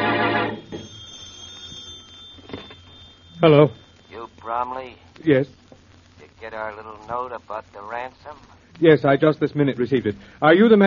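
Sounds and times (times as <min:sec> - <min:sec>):
telephone ringing: 0:00.0 - 0:05.1
speech: 0:03.4 - 0:03.8, 0:04.5 - 0:05.6, 0:06.4 - 0:10.8.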